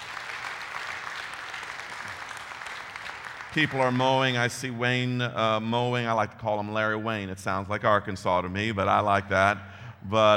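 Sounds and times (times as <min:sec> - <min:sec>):
audience applause: 0:00.0 - 0:04.4
speech: 0:03.6 - 0:10.3.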